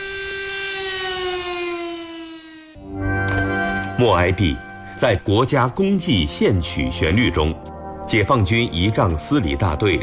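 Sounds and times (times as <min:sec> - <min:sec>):
air raid siren in Nanjing: 0:00.0 - 0:06.3
speech: 0:04.0 - 0:10.0.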